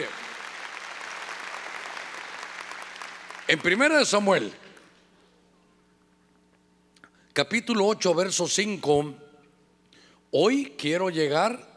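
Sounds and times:
audience clapping loudly: 0:00.0 - 0:04.2
speech: 0:03.5 - 0:04.6, 0:07.4 - 0:09.3, 0:10.3 - 0:11.7.

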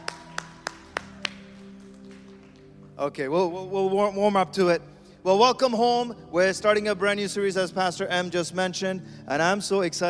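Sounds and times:
audience clapping hands: 0:00.0 - 0:03.1
speech: 0:03.0 - 0:10.0.

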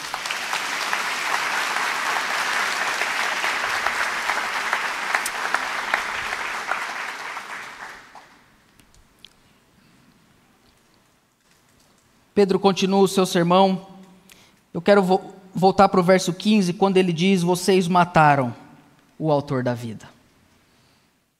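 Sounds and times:
audience clapping: 0:00.0 - 0:08.6
speech: 0:12.4 - 0:13.9, 0:14.8 - 0:18.6, 0:19.2 - 0:20.1.

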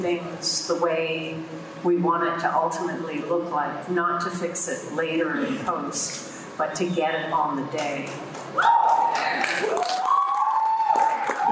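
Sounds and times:
speech: 0:00.0 - 0:08.8
filmmakers applauding: 0:08.3 - 0:11.4.

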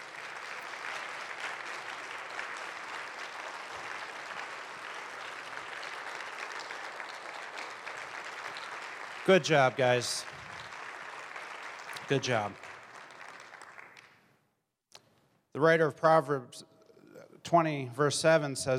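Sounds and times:
audience applauding: 0:00.0 - 0:14.2
speech: 0:09.3 - 0:10.3, 0:12.1 - 0:12.6, 0:15.6 - 0:16.7, 0:17.5 - 0:18.7.

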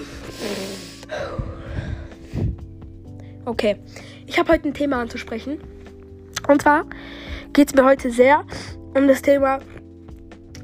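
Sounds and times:
person with a cough and sore throat inhaling deeply: 0:00.0 - 0:04.2, 0:06.9 - 0:07.5
speech: 0:03.5 - 0:05.8, 0:06.4 - 0:09.7.

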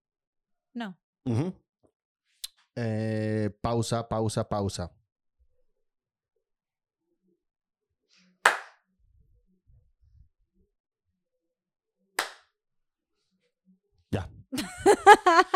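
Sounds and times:
speech: 0:00.8 - 0:01.6, 0:02.8 - 0:05.0, 0:14.5 - 0:15.5
hand clap to sync audio and video: 0:08.4 - 0:08.8, 0:12.2 - 0:12.5
laughter: 0:14.6 - 0:15.5.

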